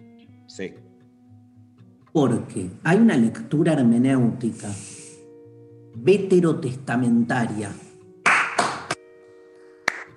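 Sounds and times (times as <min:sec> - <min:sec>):
speech: 0:00.5 - 0:00.9, 0:02.1 - 0:05.0, 0:06.0 - 0:07.8
clapping: 0:08.2 - 0:09.0, 0:09.8 - 0:10.1.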